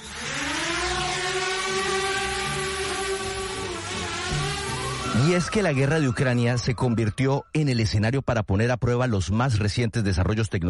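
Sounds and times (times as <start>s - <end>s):
military drones buzzing: 0.0s - 6.4s
speech: 5.3s - 10.6s.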